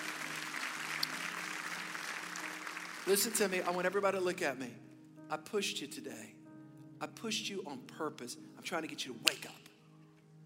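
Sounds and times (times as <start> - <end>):
crowd clapping: 0.0 - 3.9
speech: 3.1 - 6.4, 7.0 - 9.6.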